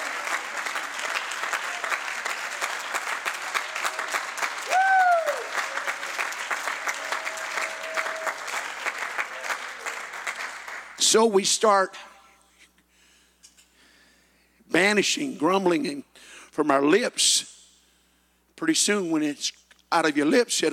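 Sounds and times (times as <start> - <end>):
audience applause: 0.0 - 11.0
speech: 11.1 - 12.1, 14.8 - 17.5, 18.6 - 20.7.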